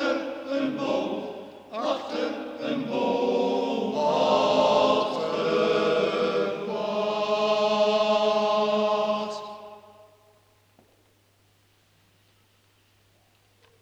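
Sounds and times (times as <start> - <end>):
choir singing: 0.0 - 10.2.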